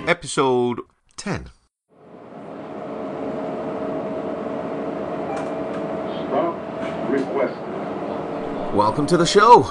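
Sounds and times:
speech: 0.2 - 1.6, 8.7 - 9.6
inside a city bus from the airport: 2.1 - 9.6.

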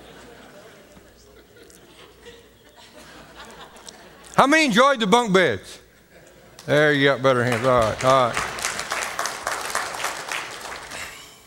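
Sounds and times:
laughter: 0.0 - 4.4, 6.0 - 6.7
speech: 4.4 - 5.7, 6.6 - 8.5
audience clapping: 6.5 - 11.3.

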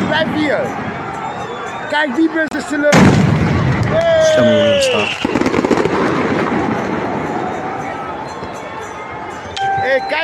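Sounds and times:
speech: 0.1 - 0.9, 1.9 - 6.1, 9.9 - 10.2
fireworks explosions: 2.9 - 8.0.

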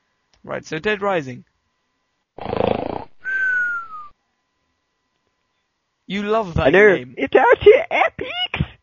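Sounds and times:
speech: 0.4 - 1.5, 6.1 - 8.6
snoring sound effect: 2.4 - 3.1.

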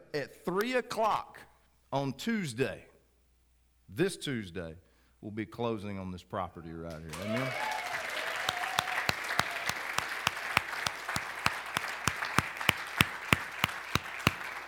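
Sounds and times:
speech: 0.1 - 2.9, 3.9 - 7.7
audience applause: 7.1 - 14.6.

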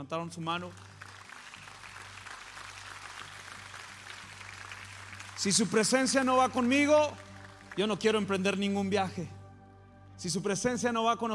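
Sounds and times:
speech: 0.0 - 0.9, 5.4 - 9.4, 10.2 - 11.3
audience applause: 0.8 - 8.3.

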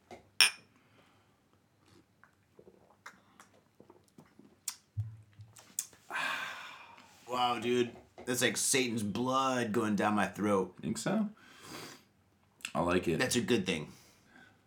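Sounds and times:
glasses clinking in a toast: 0.4 - 0.6
speech: 7.4 - 11.4, 12.8 - 14.0.

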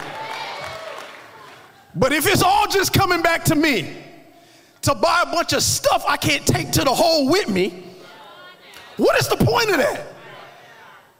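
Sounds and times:
clapping: 0.0 - 1.8
crowd cheering: 0.0 - 2.2, 7.9 - 11.1
speech: 2.0 - 4.1, 4.8 - 7.8, 9.0 - 10.1.

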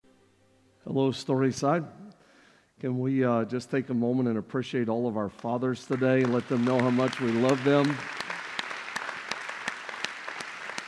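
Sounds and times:
speech: 0.8 - 2.0, 2.8 - 8.2
crowd applauding: 5.8 - 10.8.

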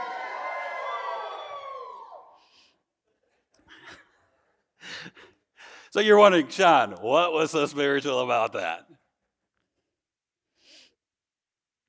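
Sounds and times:
audience yelling: 0.0 - 2.4
speech: 6.0 - 8.9.

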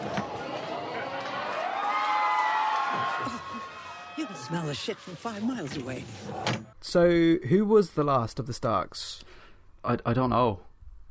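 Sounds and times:
round of applause and cheering: 0.0 - 5.5
speech: 4.5 - 10.7.

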